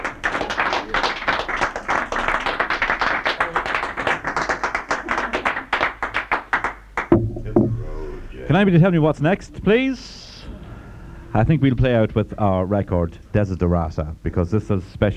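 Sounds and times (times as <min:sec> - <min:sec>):
round of applause: 0:00.0 - 0:07.2
speech: 0:08.5 - 0:10.2, 0:11.3 - 0:15.1.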